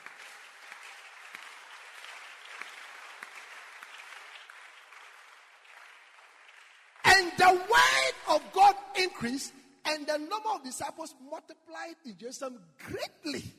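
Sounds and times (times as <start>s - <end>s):
crowd clapping: 0.0s - 8.7s
speech: 7.4s - 13.5s.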